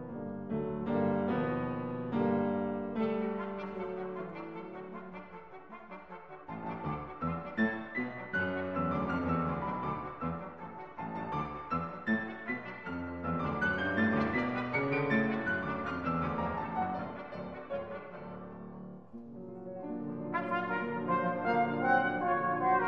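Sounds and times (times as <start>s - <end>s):
piano in a trio: 0.0s - 22.8s
trumpet in a trio: 2.8s - 18.7s, 20.1s - 22.8s
trombone in a trio: 2.8s - 18.8s, 20.1s - 22.8s.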